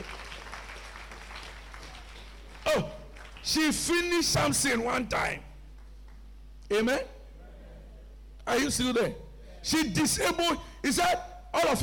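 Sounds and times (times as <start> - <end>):
church congregation clapping hands during a sermon: 0.0 - 4.8, 5.7 - 6.3
speech: 2.7 - 5.5, 6.7 - 7.2, 8.5 - 11.8.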